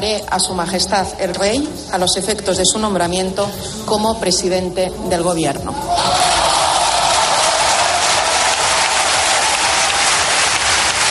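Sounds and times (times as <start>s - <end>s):
speech: 0.0s - 6.0s
applause in parliament after vote: 6.2s - 11.0s.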